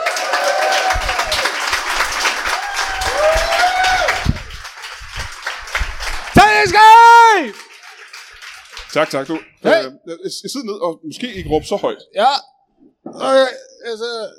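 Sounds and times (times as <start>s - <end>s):
live audience applause: 0.0s - 9.7s
speech: 8.9s - 12.5s, 13.1s - 14.3s.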